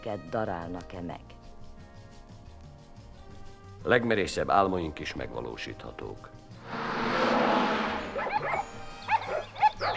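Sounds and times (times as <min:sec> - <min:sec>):
speech: 0:00.0 - 0:01.4, 0:03.8 - 0:06.9
rush of broad noise: 0:06.6 - 0:08.4
dogs barking: 0:08.2 - 0:09.9.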